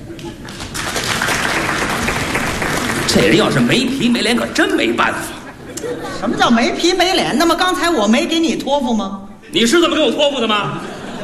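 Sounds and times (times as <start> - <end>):
crowd applause: 0.0 - 5.1
laughter: 2.8 - 6.8, 10.6 - 11.2
speech: 3.1 - 5.4, 6.0 - 10.9.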